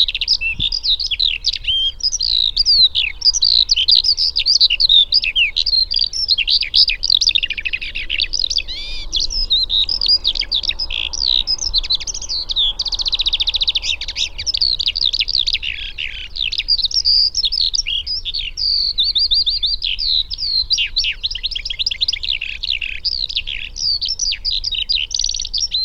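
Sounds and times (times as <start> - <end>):
Eurasian skylark song: 0.0 - 25.8
low rumble: 8.3 - 15.6.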